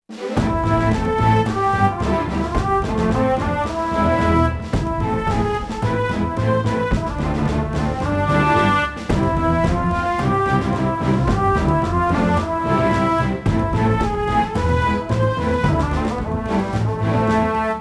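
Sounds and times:
music intro: 0:00.1 - 0:17.7.

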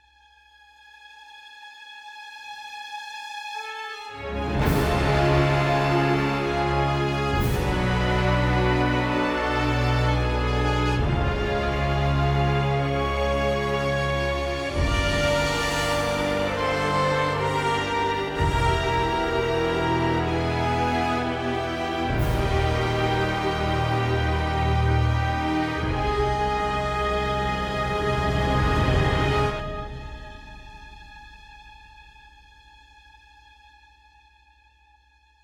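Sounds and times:
cinematic music: 0:03.7 - 0:31.9.

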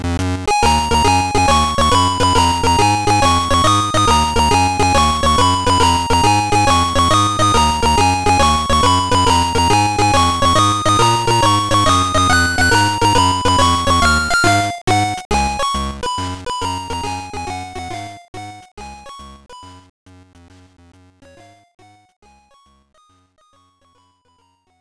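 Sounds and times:
level game music: 0:00.5 - 0:16.0, 0:16.6 - 0:18.0.

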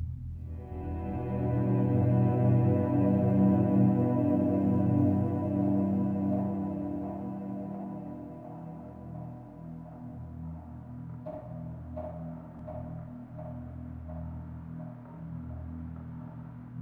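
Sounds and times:
ambience: 0:00.4 - 0:10.2.

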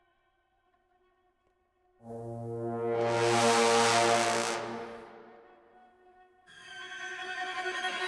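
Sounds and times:
combat music loop: 0:02.1 - 0:05.4.

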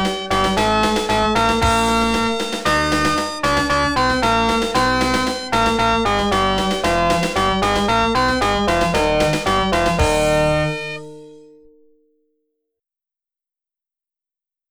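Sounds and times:
win game music: 0:00.0 - 0:11.1.

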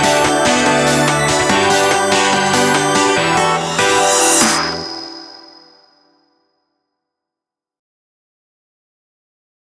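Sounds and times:
short instrumental music: 0:00.0 - 0:06.2.

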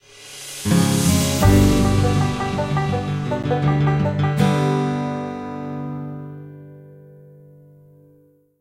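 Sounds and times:
short music stinger: 0:00.0 - 0:05.3.

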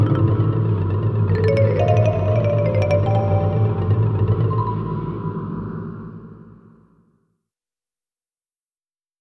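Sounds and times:
horror music: 0:00.0 - 0:06.7.

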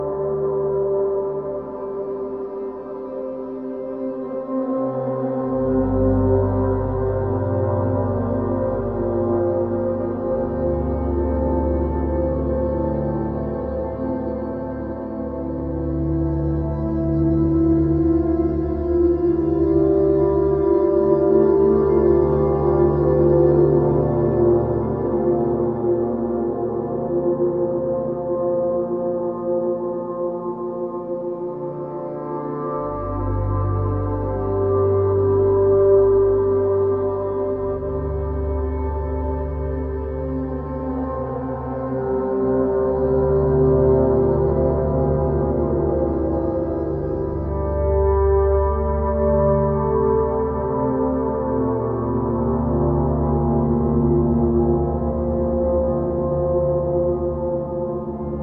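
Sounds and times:
melancholy ambient music: 0:00.0 - 0:58.4.

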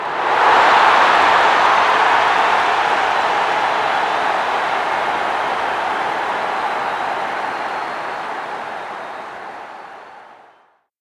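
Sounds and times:
crowd cheering a goal scored: 0:00.0 - 0:10.8.

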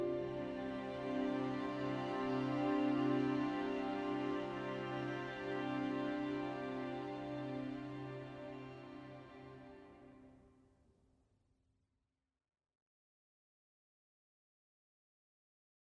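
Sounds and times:
field background music: 0:00.0 - 0:10.3.

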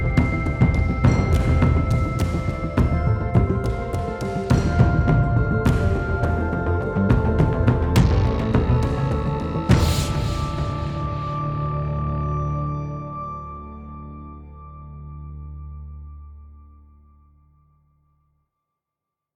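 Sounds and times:
action music loop: 0:00.0 - 0:12.5.

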